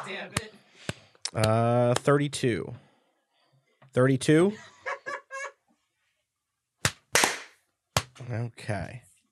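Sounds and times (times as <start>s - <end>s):
speech: 0.1s - 2.8s, 3.9s - 4.7s, 8.3s - 9.1s
laughter: 1.4s - 2.0s, 4.4s - 5.5s
single hand clap: 6.8s - 8.1s.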